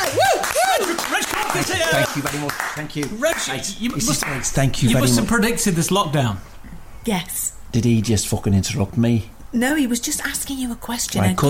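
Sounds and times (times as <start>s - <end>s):
whooping and shouting: 0.0s - 2.0s
audience applause: 0.0s - 4.5s
speech: 1.6s - 11.4s.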